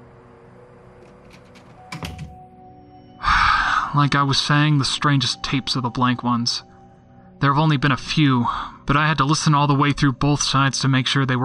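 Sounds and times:
door being pushed shut: 0:01.0 - 0:02.4
speech: 0:04.0 - 0:06.7, 0:07.4 - 0:11.4.

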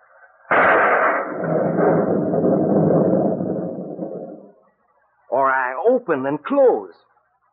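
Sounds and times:
thunder sound effect crack and rolling rumble: 0:00.5 - 0:04.6
speech: 0:05.9 - 0:07.1.

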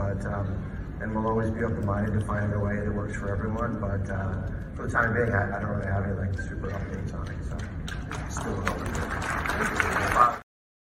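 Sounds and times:
speech: 0:00.2 - 0:10.4
convention audience applause: 0:07.9 - 0:10.4.

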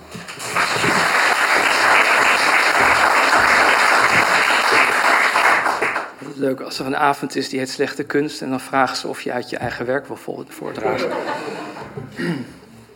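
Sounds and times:
audience applause: 0:00.0 - 0:06.2
speech: 0:06.4 - 0:12.6
laughter: 0:10.6 - 0:12.8.

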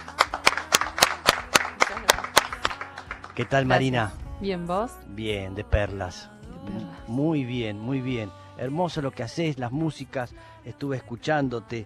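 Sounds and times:
applause for studio guest: 0:00.0 - 0:03.7
speech: 0:03.4 - 0:11.8.

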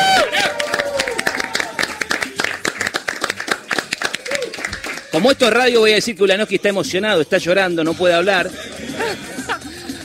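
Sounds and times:
people clapping: 0:00.0 - 0:05.7
speech: 0:05.2 - 0:09.3
laughter: 0:08.5 - 0:10.0.

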